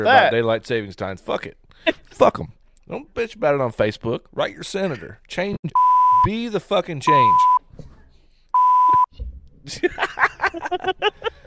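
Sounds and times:
speech: 0.0 - 7.6, 9.6 - 11.3
censor bleep: 5.8 - 6.3, 7.1 - 7.6, 8.6 - 9.1
laughter: 9.7 - 11.4.

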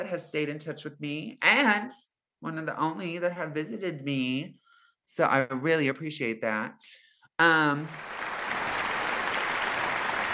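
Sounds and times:
speech: 0.0 - 8.2
audience applause: 7.9 - 10.3.

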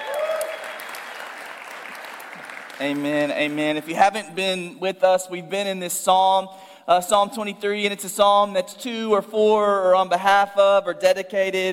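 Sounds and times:
church congregation clapping at a morning service: 0.0 - 4.0
speech: 2.8 - 11.7.

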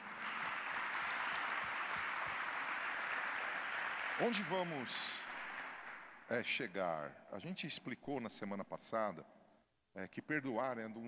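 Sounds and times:
audience applause: 0.0 - 6.2
speech: 4.2 - 5.2, 6.3 - 9.4, 10.0 - 11.0.

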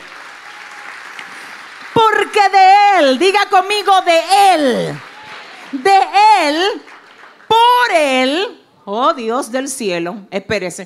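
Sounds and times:
audience applause: 0.0 - 2.4, 4.8 - 7.5
speech: 2.3 - 5.1, 5.7 - 6.9, 7.8 - 10.8.

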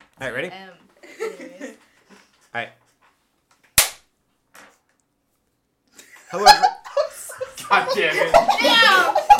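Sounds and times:
speech: 0.2 - 1.5, 2.6 - 2.8, 6.3 - 6.8, 7.8 - 9.2
laughter: 1.0 - 2.0, 6.0 - 9.3
hand clap: 3.8 - 4.1.

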